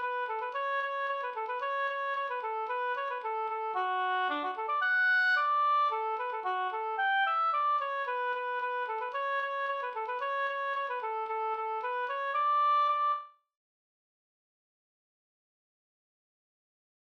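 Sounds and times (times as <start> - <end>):
polka music: 0.0 - 13.2.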